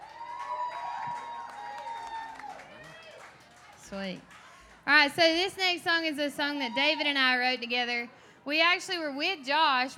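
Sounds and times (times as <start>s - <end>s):
audience applause: 0.0s - 4.6s
speech: 3.9s - 9.9s.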